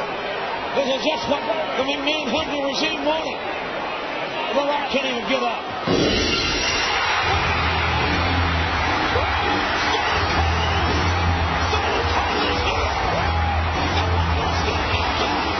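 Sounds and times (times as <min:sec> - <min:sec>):
wrestling arena crowd cheering loudly: 0:00.0 - 0:15.5
speech: 0:00.8 - 0:03.7, 0:04.5 - 0:06.3.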